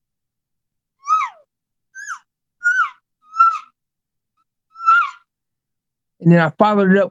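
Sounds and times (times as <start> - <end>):
elk calf mews: 2.0 - 3.7, 4.8 - 5.2
speech: 6.2 - 7.0.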